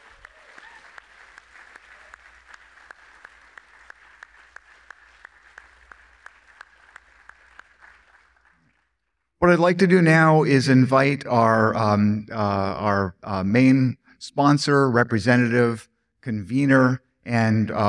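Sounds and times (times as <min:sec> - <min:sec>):
audience applause: 0:00.0 - 0:09.0
speech: 0:09.4 - 0:17.8.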